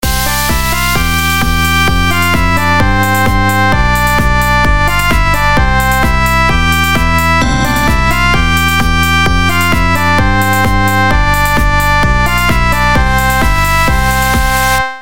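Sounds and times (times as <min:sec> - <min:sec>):
electronic dance music: 0:00.0 - 0:15.0.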